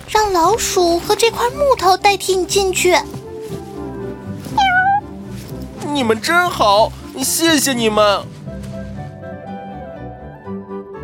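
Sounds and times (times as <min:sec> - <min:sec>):
speech: 0:00.4 - 0:03.2, 0:06.0 - 0:08.4
cat meowing: 0:04.5 - 0:05.2.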